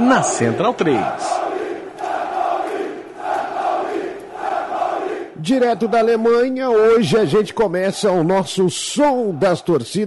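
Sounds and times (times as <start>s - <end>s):
speech: 0.0s - 1.4s, 5.4s - 10.0s
football fans chanting: 0.0s - 6.4s.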